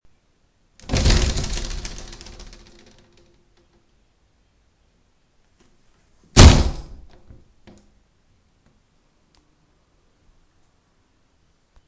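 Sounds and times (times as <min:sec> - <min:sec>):
plastic door: 0:00.8 - 0:03.9, 0:06.4 - 0:07.9.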